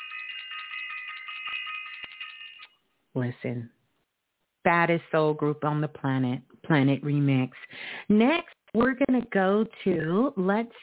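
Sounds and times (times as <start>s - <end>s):
bell ringing: 0.0s - 2.8s
speech: 3.2s - 3.8s, 4.6s - 10.8s.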